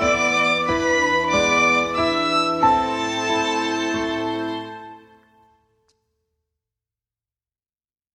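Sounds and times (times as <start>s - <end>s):
solo piano melody: 0.0s - 5.5s.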